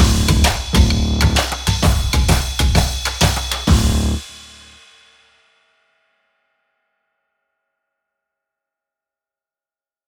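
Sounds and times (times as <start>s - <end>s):
drumcore music: 0.0s - 5.2s.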